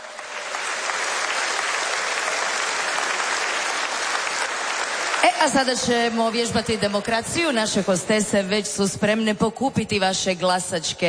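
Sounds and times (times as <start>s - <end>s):
festival audience clapping at the Melodije Istre i Kvarnera song festival: 0.0s - 8.2s
speech: 5.2s - 11.0s.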